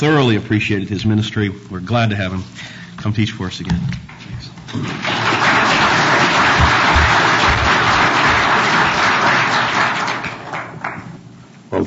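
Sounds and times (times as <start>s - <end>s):
speech: 0.0s - 4.1s, 4.7s - 5.6s
audience clapping: 4.6s - 11.3s.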